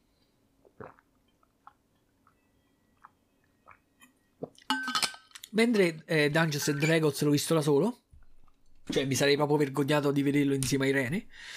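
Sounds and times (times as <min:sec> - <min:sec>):
person sipping and swallowing water: 0:00.6 - 0:02.4, 0:03.0 - 0:04.7
speech: 0:00.8 - 0:01.0, 0:05.5 - 0:08.0, 0:08.9 - 0:11.5.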